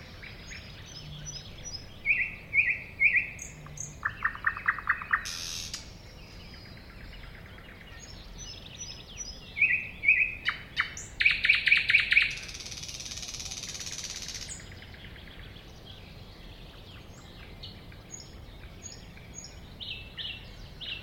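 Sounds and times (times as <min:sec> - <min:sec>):
thrush nightingale singing: 0:00.0 - 0:21.0.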